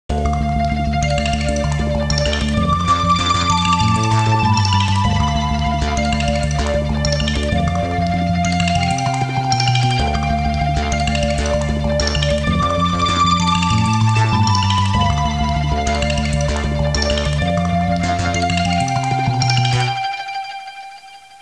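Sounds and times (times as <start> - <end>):
electronic music: 0.1 - 21.4.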